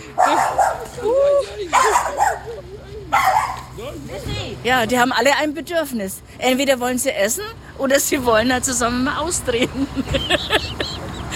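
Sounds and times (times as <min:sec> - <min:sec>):
laughter: 0:00.0 - 0:03.1, 0:09.5 - 0:11.3
speech: 0:00.2 - 0:00.4, 0:04.6 - 0:11.0
dog barking: 0:00.2 - 0:00.9, 0:01.7 - 0:03.7.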